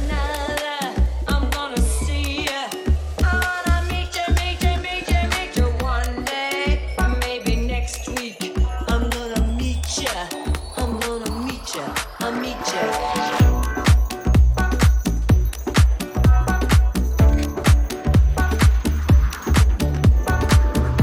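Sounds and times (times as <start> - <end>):
music with thumping low beat in Jesendorf: 0.0 - 12.4, 13.0 - 21.0
sustained tones and wavering melodic line: 6.0 - 21.0.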